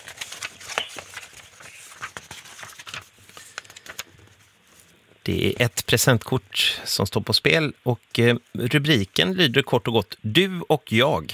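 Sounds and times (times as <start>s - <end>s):
numbered cards being leafed through: 0.0s - 5.0s
speech: 5.3s - 11.3s.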